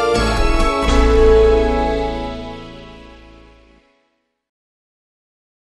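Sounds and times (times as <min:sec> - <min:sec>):
techno music: 0:00.2 - 0:02.9.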